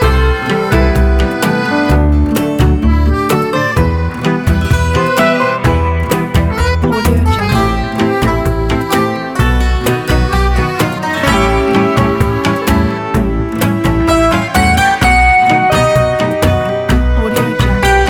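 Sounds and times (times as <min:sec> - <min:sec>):
European folk music: 0:00.0 - 0:18.0.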